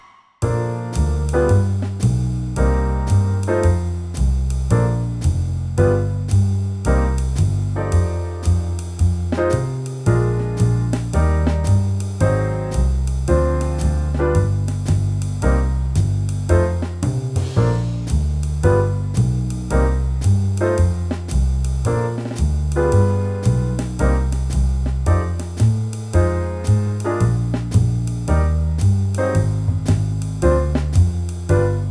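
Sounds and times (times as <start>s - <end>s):
jazz trumpet: 0.5s - 31.8s.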